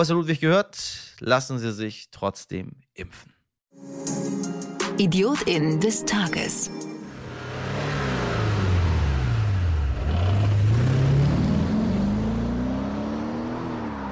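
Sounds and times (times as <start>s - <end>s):
speech: 0.0s - 6.9s
car racing at 470 km/h on the A2 Autobahn: 7.1s - 14.0s.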